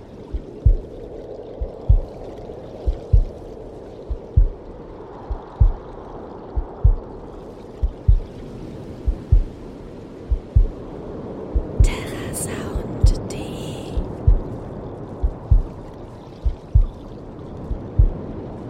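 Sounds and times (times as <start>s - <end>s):
waves: 0.0s - 18.6s
heartbeat: 0.3s - 0.9s, 1.6s - 2.2s, 2.8s - 3.4s, 4.1s - 5.9s, 6.6s - 7.1s, 7.8s - 8.3s, 9.0s - 9.5s, 10.3s - 10.8s, 11.5s - 12.2s, 12.9s - 13.3s, 14.0s - 14.6s, 15.2s - 15.8s, 16.4s - 17.0s, 17.6s - 18.2s.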